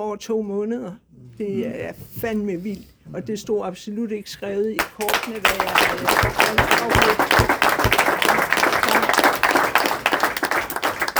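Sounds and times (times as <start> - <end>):
speech: 0.0 - 8.0
audience applause at a Danish studio programme: 4.8 - 11.1.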